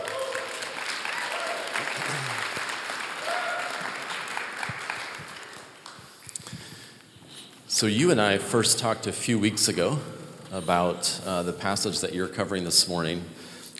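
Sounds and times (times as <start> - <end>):
audience applause at a morning church service: 0.0 - 6.0
speech: 7.8 - 13.7.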